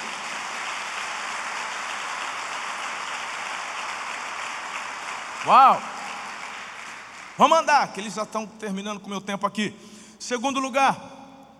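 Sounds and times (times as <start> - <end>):
crowd applauding: 0.0 - 8.0
speech: 5.4 - 5.9, 7.4 - 11.1.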